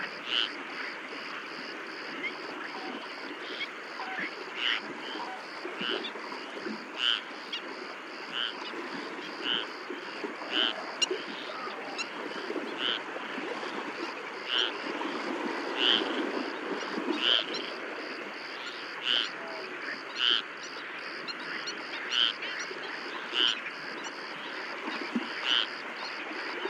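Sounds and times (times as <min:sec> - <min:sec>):
great egret calling: 0:00.0 - 0:01.0, 0:02.2 - 0:26.2
frogs croaking: 0:00.0 - 0:26.6
marsh crickets chirping: 0:00.0 - 0:26.6
waves lapping at Etang Vaccares: 0:00.0 - 0:26.6
flamingos calling: 0:07.0 - 0:07.7, 0:08.3 - 0:09.8, 0:10.5 - 0:13.1, 0:14.5 - 0:14.8, 0:15.8 - 0:16.1, 0:17.1 - 0:17.7, 0:18.7 - 0:20.5, 0:21.3 - 0:22.6, 0:23.2 - 0:23.6, 0:25.4 - 0:25.7.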